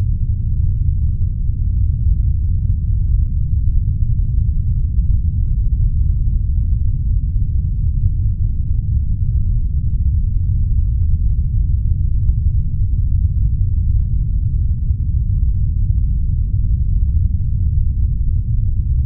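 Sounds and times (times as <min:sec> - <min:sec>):
white noise filtered at 100 Hz with 24 dB per octave slope: 0:00.0 - 0:19.0.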